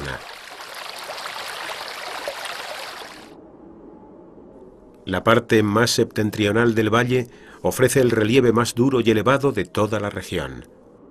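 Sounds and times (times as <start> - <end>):
mountain torrent stream flowing: 0.0 - 3.4
speech: 0.1 - 0.4, 5.0 - 10.8.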